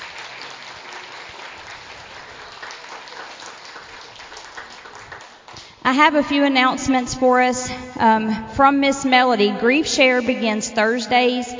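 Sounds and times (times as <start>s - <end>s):
audience applause: 0.0s - 5.7s
speech: 5.8s - 11.5s.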